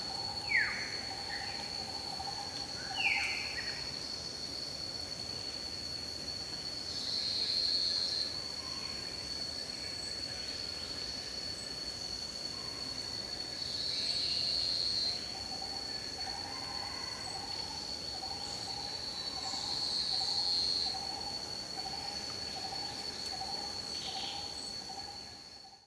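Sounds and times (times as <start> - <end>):
jungle insects in Thailand: 0.0 - 25.8.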